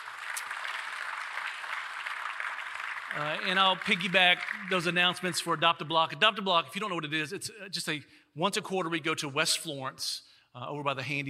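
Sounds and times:
audience applause: 0:00.0 - 0:05.6
speech: 0:03.1 - 0:11.2.

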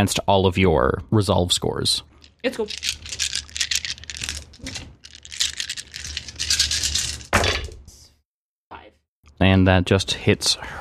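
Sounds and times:
speech: 0:00.0 - 0:03.1, 0:09.4 - 0:10.7
dice rolling in a dice tray: 0:02.2 - 0:07.3.

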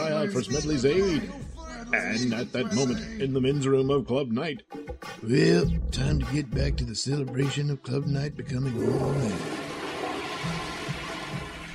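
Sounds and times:
speech: 0:00.2 - 0:09.6
toilet flushing: 0:08.7 - 0:11.7.

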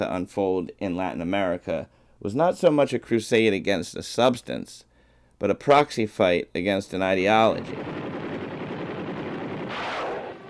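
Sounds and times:
speech: 0:00.0 - 0:08.0
celebratory gunfire in Saigon on the day the communists won: 0:07.6 - 0:10.4.

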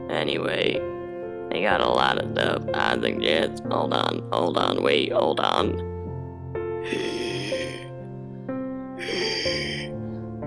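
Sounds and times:
speech: 0:00.3 - 0:01.0, 0:01.5 - 0:05.9, 0:06.9 - 0:07.2
sharp breath from a man with one lung: 0:06.9 - 0:07.9, 0:09.0 - 0:10.3.

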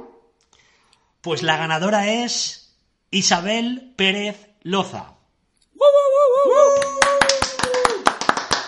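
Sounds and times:
speech: 0:01.3 - 0:05.1
hands clapping: 0:06.7 - 0:08.6.

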